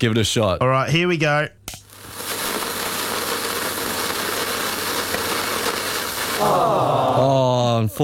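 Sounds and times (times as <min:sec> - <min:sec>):
speech: 0:00.0 - 0:01.8, 0:06.4 - 0:08.0
firework fizzling out: 0:01.8 - 0:07.3.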